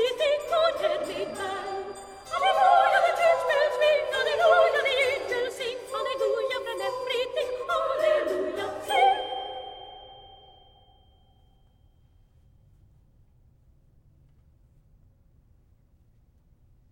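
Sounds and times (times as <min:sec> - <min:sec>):
zither carol: 0:00.0 - 0:11.0.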